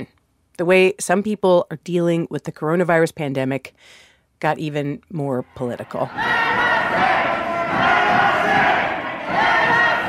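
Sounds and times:
speech: 0.0s - 7.1s
angry protest crowd yelling and chanting: 5.9s - 10.0s.

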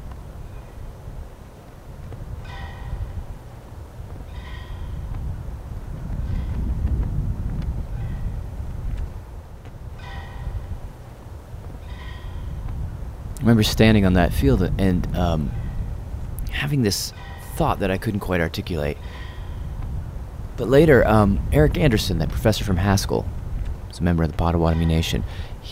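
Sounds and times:
flag flapping in the wind on a field: 0.0s - 14.5s, 19.8s - 24.6s
low wind rumble outdoors on a field: 0.0s - 25.7s
speech: 13.4s - 15.6s, 16.6s - 19.2s, 20.6s - 23.4s, 24.0s - 25.7s.

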